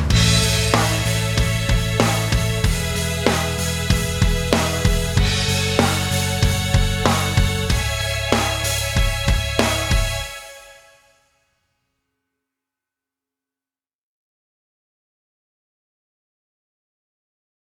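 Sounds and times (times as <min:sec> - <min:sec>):
karaoke singing: 0:00.1 - 0:10.4.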